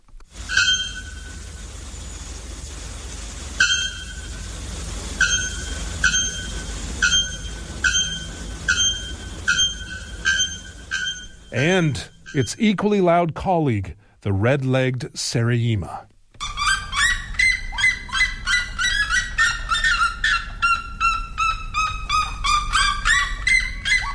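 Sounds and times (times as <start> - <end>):
bare-throated bellbird shrieking: 5.2 - 12.7, 16.4 - 24.1
speech: 11.6 - 16.1.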